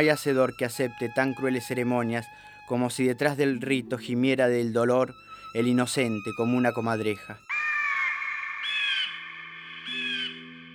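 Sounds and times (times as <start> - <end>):
speech: 0.0 - 7.6
crows cawing: 7.5 - 10.7.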